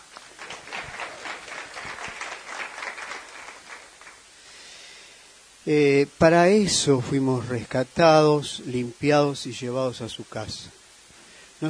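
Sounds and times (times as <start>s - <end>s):
audience applause: 0.0s - 4.3s
speech: 5.7s - 10.8s.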